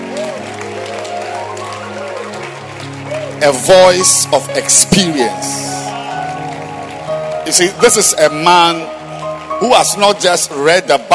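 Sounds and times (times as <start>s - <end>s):
audience clapping hands: 0.0s - 11.1s
speech: 3.4s - 5.8s, 7.5s - 9.0s, 9.6s - 11.1s.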